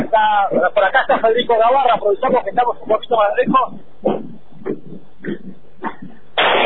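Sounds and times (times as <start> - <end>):
speech: 0.2 - 3.9
firecrackers going off: 6.4 - 6.6.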